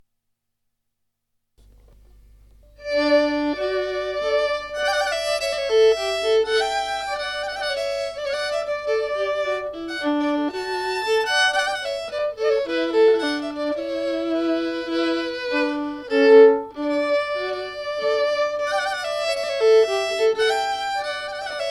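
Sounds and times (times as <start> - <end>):
minuet: 1.6 - 21.6.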